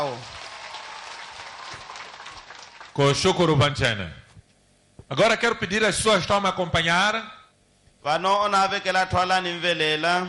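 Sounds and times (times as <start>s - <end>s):
speech: 0.0s - 0.4s, 3.0s - 4.2s, 5.1s - 7.4s, 8.0s - 10.2s
round of applause: 0.0s - 3.5s.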